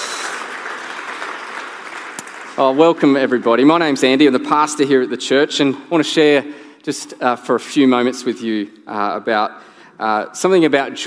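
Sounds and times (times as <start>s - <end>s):
audience clapping: 0.0s - 3.7s
speech: 2.6s - 11.0s.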